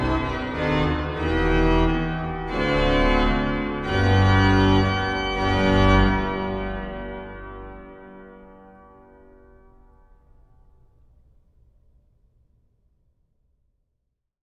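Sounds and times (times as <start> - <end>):
organist playing a prelude in G: 0.0 - 9.4.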